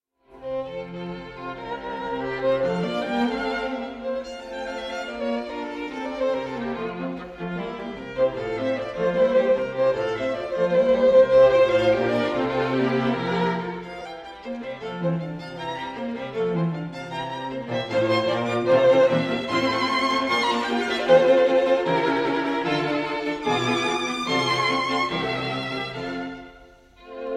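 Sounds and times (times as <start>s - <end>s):
string quartet in B flat major: 0.3s - 27.3s.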